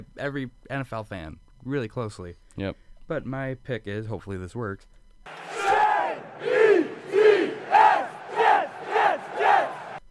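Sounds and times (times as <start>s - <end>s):
speech: 0.1s - 5.4s
drunk crowd screaming team name: 5.3s - 10.0s.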